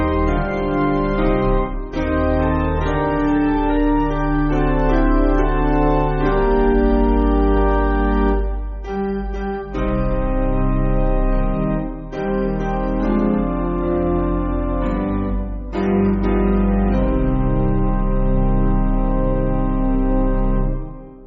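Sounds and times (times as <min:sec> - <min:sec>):
spiritual organ music: 0:00.0 - 0:21.2.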